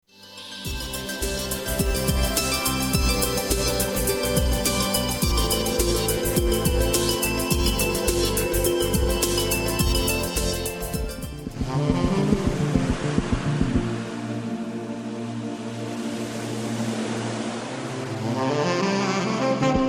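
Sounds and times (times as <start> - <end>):
instrumental medley: 0.4 - 19.8.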